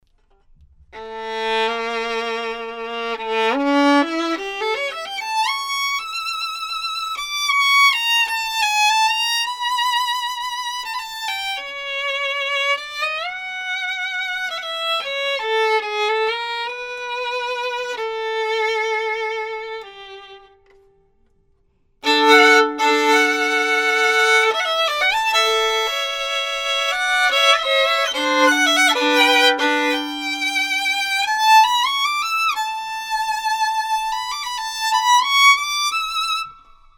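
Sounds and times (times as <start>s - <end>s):
violin played professionally: 0.2s - 21.4s, 22.0s - 36.9s.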